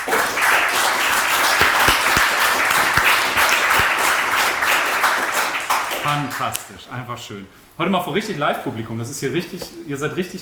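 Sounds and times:
audience applause: 0:00.0 - 0:06.5
speech: 0:06.1 - 0:10.4.

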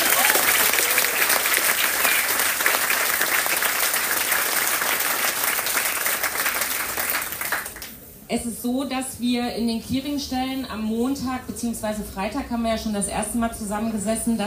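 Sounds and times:
applause: 0:00.0 - 0:08.0
speech: 0:08.3 - 0:14.4.

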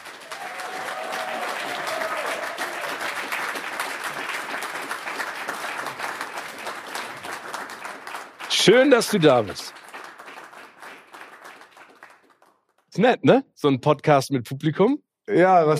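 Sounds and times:
audience applause: 0:00.0 - 0:12.6
speech: 0:08.6 - 0:09.8, 0:13.0 - 0:15.7.

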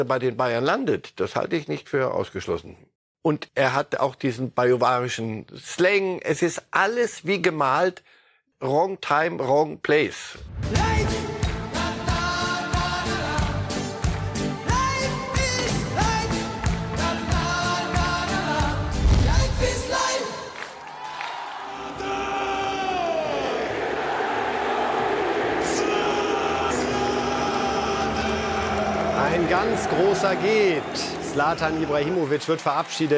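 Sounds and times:
speech: 0:00.0 - 0:11.2, 0:29.4 - 0:33.1
rhythmic music passage: 0:10.6 - 0:20.3, 0:21.8 - 0:33.1
large stadium crowd applauding and cheering: 0:13.4 - 0:18.6, 0:20.3 - 0:33.1.

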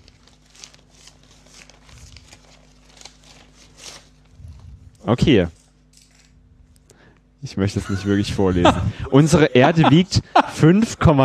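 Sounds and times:
paper envelope being torn open: 0:00.0 - 0:06.3
speech: 0:05.0 - 0:05.6, 0:07.5 - 0:11.2
laughter: 0:07.6 - 0:11.2.

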